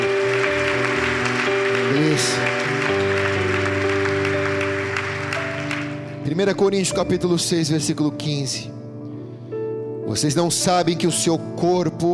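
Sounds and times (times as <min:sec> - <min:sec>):
audience applause: 0:00.0 - 0:06.2
speech: 0:06.3 - 0:08.8, 0:10.1 - 0:12.1.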